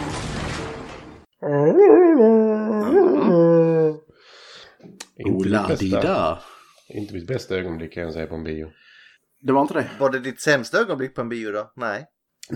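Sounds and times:
person imitating a Wookiee howl: 1.5s - 4.0s
speech: 5.6s - 12.5s.

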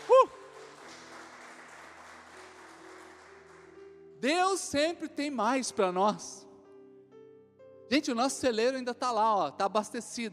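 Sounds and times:
church audience applauding: 0.0s - 3.8s
speech: 4.2s - 6.5s, 7.9s - 10.3s.

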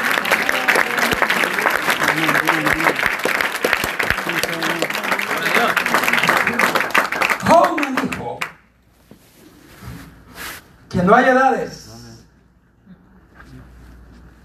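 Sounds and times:
audience applause: 0.0s - 8.5s
speech: 11.0s - 11.8s.

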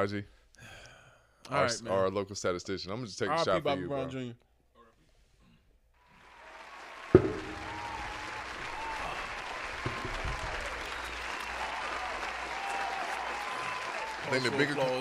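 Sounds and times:
speech: 0.0s - 0.8s, 1.5s - 4.5s, 14.3s - 15.0s
group applause: 6.0s - 15.0s
sharp bang: 7.2s - 8.7s.

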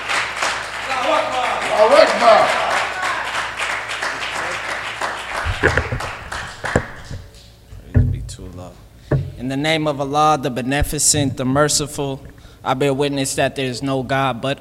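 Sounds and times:
audience applause: 0.0s - 7.3s
speech: 1.1s - 2.6s, 5.6s - 6.0s, 9.5s - 14.5s.

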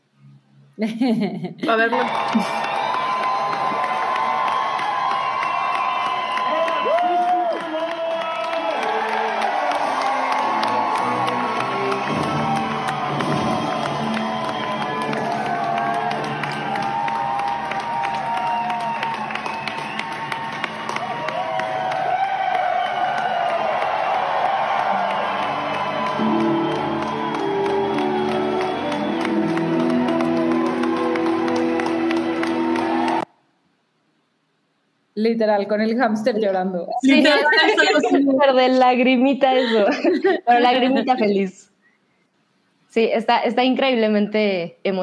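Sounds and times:
speech: 0.8s - 2.7s, 35.3s - 41.7s, 43.0s - 45.0s
laughter: 0.8s - 2.8s, 37.1s - 38.2s, 39.5s - 41.3s
audience applause and ovation: 1.7s - 33.3s.

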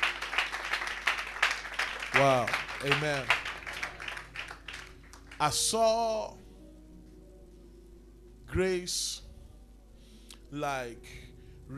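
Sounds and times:
audience clapping: 0.0s - 6.0s
speech: 2.2s - 3.4s, 5.4s - 6.4s, 8.5s - 9.2s, 10.5s - 11.7s.

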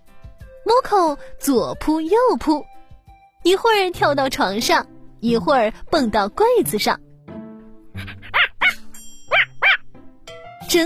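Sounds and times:
speech: 0.6s - 2.7s, 3.4s - 7.0s
dog whining: 8.0s - 9.8s.

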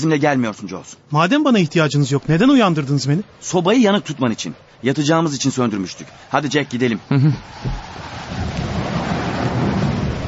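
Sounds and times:
speech: 0.0s - 8.6s
snowstorm wind howling outside: 1.3s - 10.2s.

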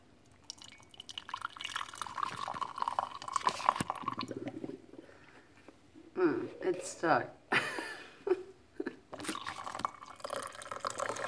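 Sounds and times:
hot brewed coffee pouring into a cup: 0.3s - 4.8s, 9.2s - 11.2s
speech: 6.2s - 7.4s.

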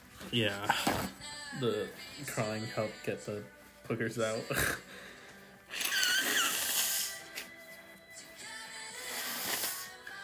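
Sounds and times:
speech: 0.3s - 5.0s
nose blowing: 5.7s - 7.5s, 8.8s - 10.1s.

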